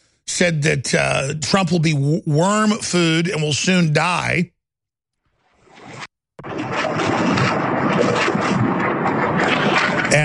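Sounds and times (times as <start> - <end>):
speech: 0.4 - 4.6
rockets firing from the Golan Heights into Israel: 6.4 - 10.2.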